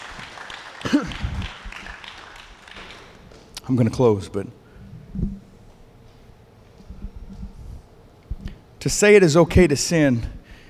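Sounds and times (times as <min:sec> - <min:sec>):
audience clapping: 0:00.0 - 0:03.5
speech: 0:03.7 - 0:04.6, 0:05.2 - 0:05.4, 0:08.8 - 0:10.4.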